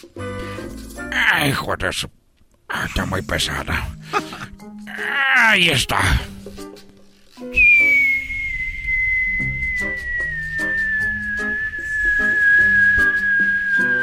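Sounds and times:
speech: 1.3s - 4.4s, 5.0s - 6.6s
falling stone whistling sound effect: 7.5s - 14.0s.

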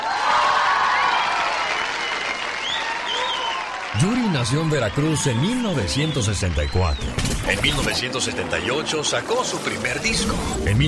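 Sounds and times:
live audience applause: 0.0s - 6.4s
speech: 4.0s - 10.8s.

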